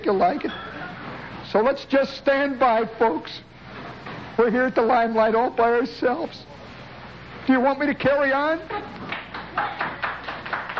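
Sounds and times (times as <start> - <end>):
speech: 0.1 - 0.7, 1.5 - 3.5, 4.4 - 6.5, 7.5 - 9.0, 9.6 - 9.9
bartenders applauding: 9.1 - 10.7.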